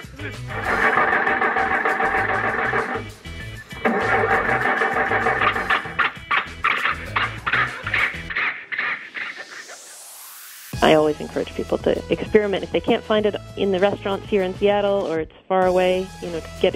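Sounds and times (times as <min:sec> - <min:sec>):
speech: 0:00.2 - 0:00.9, 0:10.9 - 0:16.7
car engine starting: 0:00.3 - 0:07.7.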